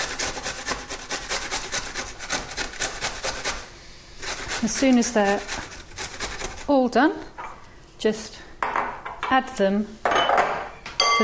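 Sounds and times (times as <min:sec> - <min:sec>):
coarsely grating fruit on a coarse grater: 0:00.0 - 0:03.6, 0:04.2 - 0:06.8
speech: 0:04.6 - 0:05.7, 0:06.7 - 0:07.3, 0:08.0 - 0:08.4, 0:09.3 - 0:10.0.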